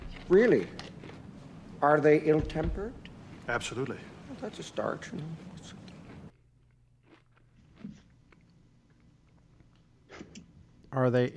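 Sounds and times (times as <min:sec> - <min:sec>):
eating crunchy potato chips: 0:00.0 - 0:01.3, 0:05.1 - 0:10.3
speech: 0:00.3 - 0:00.8, 0:01.8 - 0:05.8, 0:10.9 - 0:11.3.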